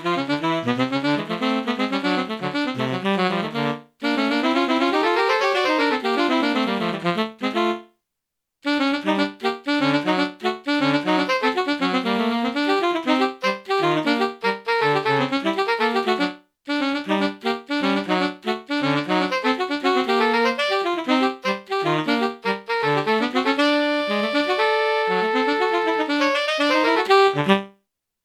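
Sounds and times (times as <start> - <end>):
tenor saxophone duet playing standards: 0.0 - 8.0, 8.6 - 27.8.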